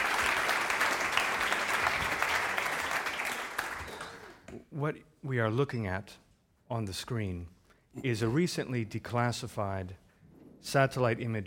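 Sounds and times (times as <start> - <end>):
audience applause welcoming a speaker onto the stage: 0.0 - 4.5
speech: 4.8 - 10.0, 10.6 - 11.4.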